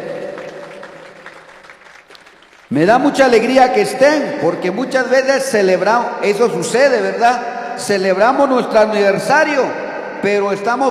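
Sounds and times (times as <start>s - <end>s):
audience applause: 0.0s - 3.0s
speech: 2.7s - 10.9s.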